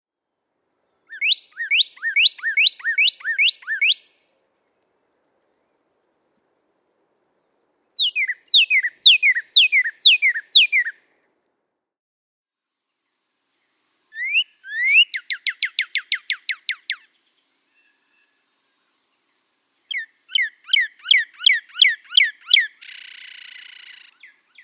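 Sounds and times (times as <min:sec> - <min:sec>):
Northern cardinal metallic chip calls: 0:01.1 - 0:04.2, 0:07.9 - 0:11.0, 0:14.0 - 0:24.6.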